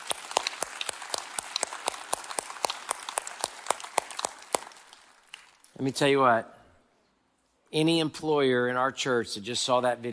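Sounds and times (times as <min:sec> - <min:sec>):
audience clapping: 0:00.0 - 0:05.7
speech: 0:05.8 - 0:06.6, 0:07.7 - 0:10.1.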